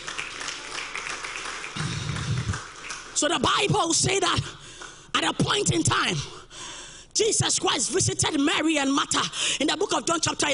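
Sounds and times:
audience clapping: 0:00.0 - 0:03.5, 0:04.7 - 0:05.0
crowd rumble: 0:01.8 - 0:02.6
speech: 0:03.2 - 0:04.6, 0:05.2 - 0:06.4, 0:07.2 - 0:10.5.

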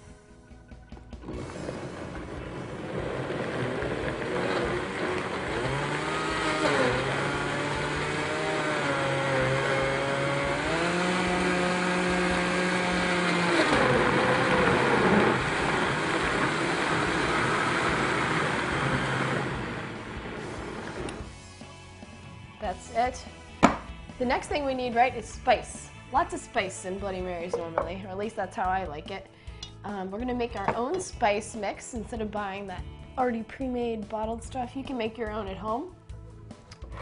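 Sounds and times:
blender blending drink ingredients: 0:01.2 - 0:21.3
speech: 0:23.0 - 0:23.3, 0:24.2 - 0:35.9.

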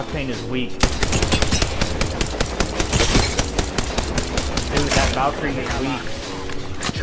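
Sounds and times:
speech: 0:00.0 - 0:01.6, 0:04.8 - 0:06.3
automatic gunfire in a video game shootout: 0:00.8 - 0:05.2.

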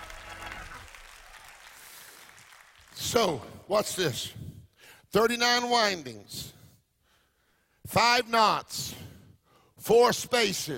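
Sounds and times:
church congregation applauding and making noise: 0:00.0 - 0:03.6
speech: 0:03.1 - 0:04.5, 0:05.1 - 0:06.6, 0:07.9 - 0:09.0, 0:09.8 - 0:10.7.

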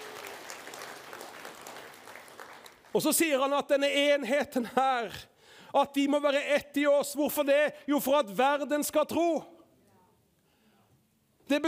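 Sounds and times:
audience applause: 0:00.0 - 0:03.0
speech: 0:02.9 - 0:09.5, 0:11.5 - 0:11.6.

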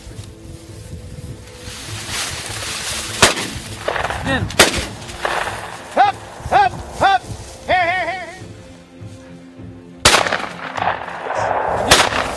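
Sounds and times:
shotgun blasts: 0:03.2 - 0:06.4, 0:10.0 - 0:12.3
flushing pheasant squawking: 0:03.8 - 0:08.4
speech: 0:04.3 - 0:04.6.

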